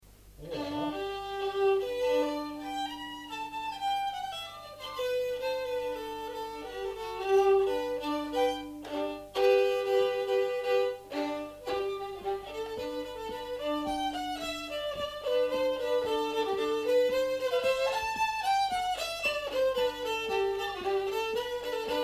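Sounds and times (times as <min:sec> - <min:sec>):
polka music: 0:00.0 - 0:22.0.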